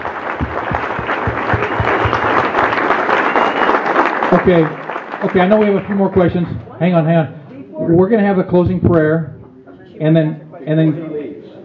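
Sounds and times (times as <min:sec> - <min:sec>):
applause: 0:00.0 - 0:06.8
speech: 0:04.3 - 0:09.3, 0:10.0 - 0:11.0.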